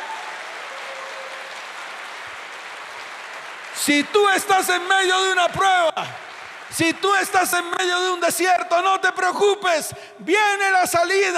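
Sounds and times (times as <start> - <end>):
audience applause: 0.0 - 8.2
speech: 3.8 - 11.3.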